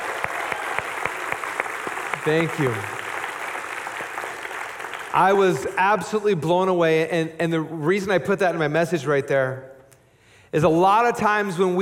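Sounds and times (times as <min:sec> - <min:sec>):
audience applause: 0:00.0 - 0:05.8
speech: 0:02.2 - 0:03.0, 0:05.2 - 0:09.7, 0:10.5 - 0:11.8.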